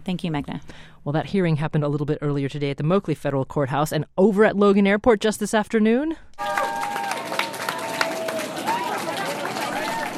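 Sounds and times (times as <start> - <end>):
speech: 0.1 - 6.7
crowd cheering and shouting at airport arrivals: 6.4 - 10.1
scattered claps: 6.4 - 10.1.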